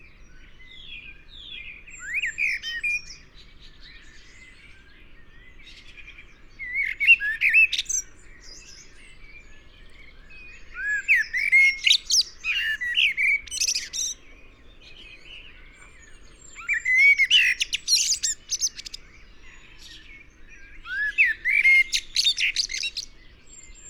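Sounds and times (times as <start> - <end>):
Eurasian blackbird singing: 0.2 - 23.8
soft birds: 5.5 - 23.8.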